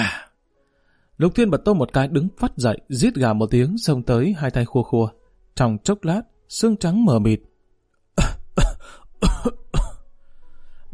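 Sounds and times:
speech: 1.2 - 7.5
people coughing from choking powder: 8.2 - 10.0.

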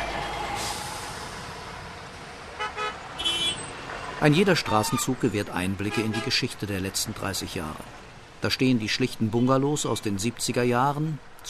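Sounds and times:
city-centre street traffic in Afghanistan: 0.0 - 11.4
short car horn toots: 2.6 - 3.6
speech: 4.2 - 11.4.

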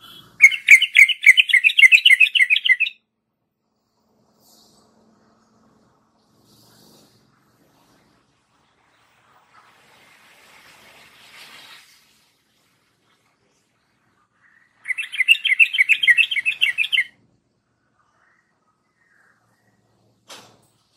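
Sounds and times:
yellow-vented bulbul singing: 0.0 - 3.0, 14.9 - 17.1.

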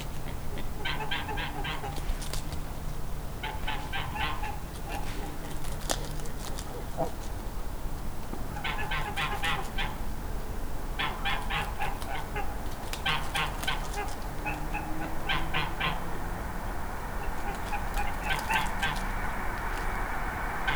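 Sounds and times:
geese honking: 0.2 - 20.7
constant low rumble: 14.7 - 20.7.

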